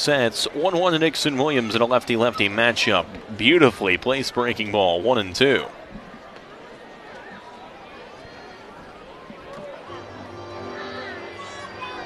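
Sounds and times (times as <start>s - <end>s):
speech: 0.0s - 5.8s
murmur of a large ballpark crowd: 0.0s - 12.0s.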